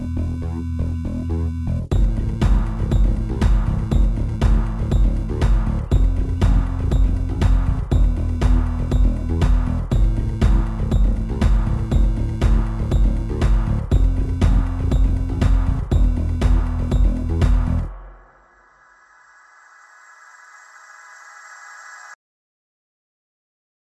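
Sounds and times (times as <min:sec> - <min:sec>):
lofi electro funk: 0:00.2 - 0:18.4.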